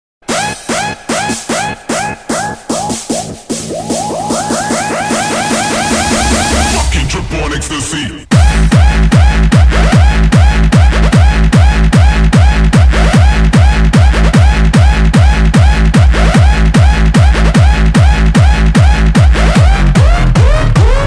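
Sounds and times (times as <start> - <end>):
electronic music: 0.2 - 21.0.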